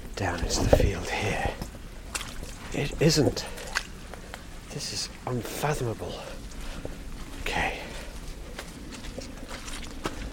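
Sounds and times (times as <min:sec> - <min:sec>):
footsteps squelching through a deep boggy field: 0:00.0 - 0:10.3
speech: 0:00.2 - 0:01.6, 0:02.7 - 0:03.6, 0:04.7 - 0:07.8.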